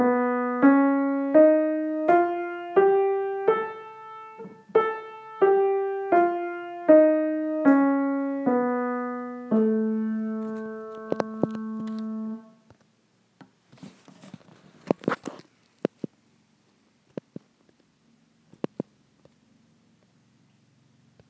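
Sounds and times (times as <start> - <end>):
whole tone scale: 0.0 - 12.7.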